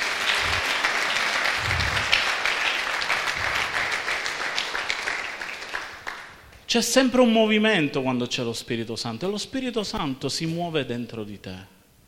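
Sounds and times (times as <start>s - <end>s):
audience applause: 0.0s - 6.3s
speech: 6.7s - 11.8s.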